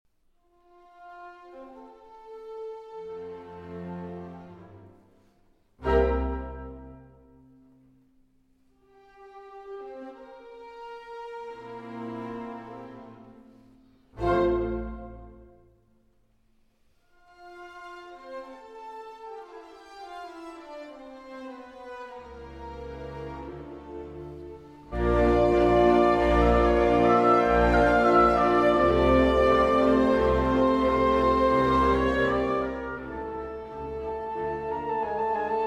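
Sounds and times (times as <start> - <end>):
symphonic andante cantabile in C major: 0.4 - 16.0, 17.0 - 35.6.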